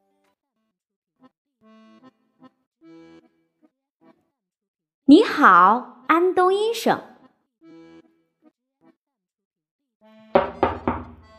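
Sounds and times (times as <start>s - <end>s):
speech: 5.1s - 7.1s
knocking on a window: 10.4s - 11.3s.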